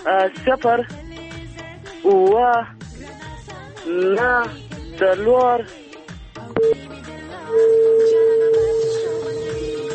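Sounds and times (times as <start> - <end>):
speech: 0.0 - 1.1, 2.0 - 3.1, 3.8 - 5.8, 6.6 - 7.8
telephone tone after a caller's line was cut off: 6.6 - 6.8, 7.5 - 9.9.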